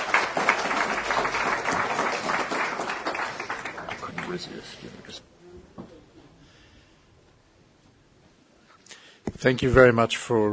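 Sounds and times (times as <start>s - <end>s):
audience round of applause for a panel: 0.0s - 5.2s
speech: 4.3s - 5.2s, 9.4s - 10.5s.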